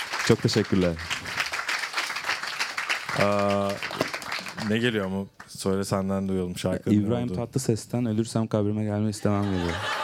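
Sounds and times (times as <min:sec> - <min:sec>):
applause: 0:00.0 - 0:05.6
speech: 0:00.3 - 0:01.4, 0:03.2 - 0:10.0
laughter: 0:09.2 - 0:10.0.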